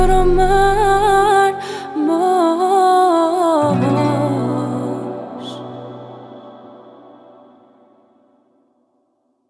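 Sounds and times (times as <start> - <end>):
woman's voice: 0.0 - 7.0.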